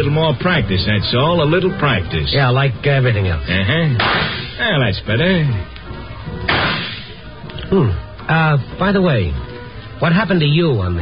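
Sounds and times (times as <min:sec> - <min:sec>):
speech: 0:00.0 - 0:05.7, 0:07.7 - 0:11.0
rifle crack at a shooting gallery, radio drama sound effect: 0:04.0 - 0:04.6, 0:06.5 - 0:07.1.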